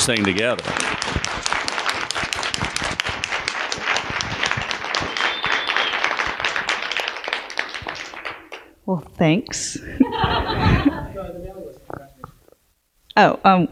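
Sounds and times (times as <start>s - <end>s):
speech: 0.0s - 1.2s, 8.9s - 11.6s, 13.2s - 13.7s
audience applause: 0.0s - 8.7s
laughter: 9.8s - 11.6s.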